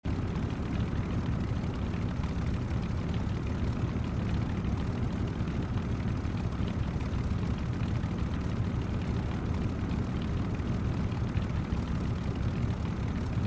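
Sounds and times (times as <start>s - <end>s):
cars idling: 0.1s - 13.4s.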